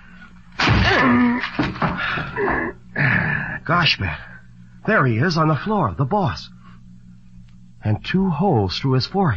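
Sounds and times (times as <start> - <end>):
door being broken down with chair: 0.6 - 2.3
speech: 3.7 - 6.6, 7.8 - 9.3.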